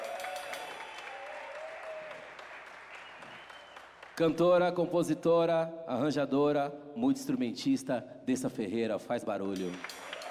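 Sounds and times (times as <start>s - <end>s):
faint sustained audience cheer: 0.0s - 4.1s, 9.8s - 10.2s
audience applauding a guest at a live music show: 0.0s - 4.7s, 9.6s - 10.2s
speech: 4.2s - 10.0s.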